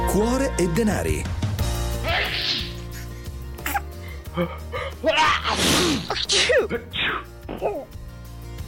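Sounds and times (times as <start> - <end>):
speech: 0.2 - 1.4, 4.4 - 7.9
burst of repeated sneezes: 2.1 - 4.0, 5.0 - 8.0.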